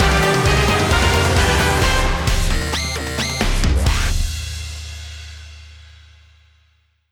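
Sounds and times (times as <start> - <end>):
battle victory music: 0.0 - 4.3.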